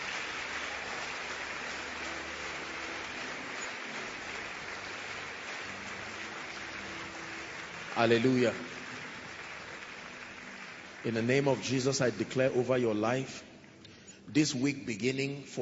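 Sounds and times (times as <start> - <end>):
audience applause: 0.0 - 12.5
speech: 8.0 - 8.7, 11.0 - 13.5, 14.3 - 15.6.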